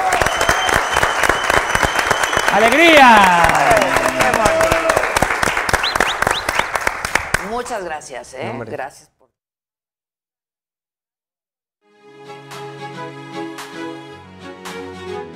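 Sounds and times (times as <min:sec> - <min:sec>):
applause: 0:00.0 - 0:07.8
speech: 0:02.5 - 0:04.8, 0:07.6 - 0:09.1.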